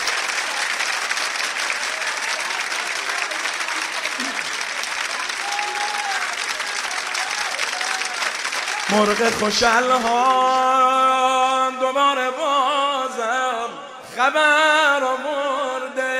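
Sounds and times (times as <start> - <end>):
audience applause at a gathering: 0.0 - 10.7
speech: 8.9 - 16.1.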